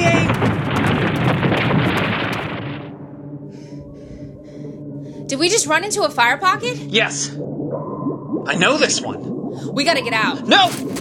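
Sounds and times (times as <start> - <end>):
downtown buildings collapsing with falling debris: 0.0 - 3.1
speech: 5.4 - 11.0.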